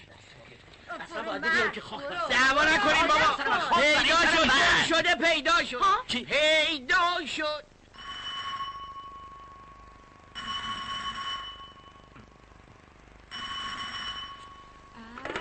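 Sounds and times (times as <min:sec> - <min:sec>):
speech: 0:01.2 - 0:07.7
telephone ringing in bright electronic bursts: 0:07.9 - 0:15.3.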